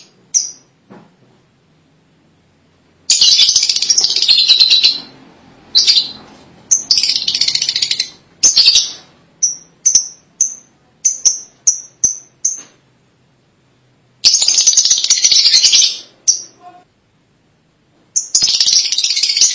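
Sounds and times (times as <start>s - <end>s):
lovebird shrill chirps and twittering: 0.0s - 0.7s, 3.1s - 12.8s, 14.2s - 16.8s, 18.1s - 19.5s.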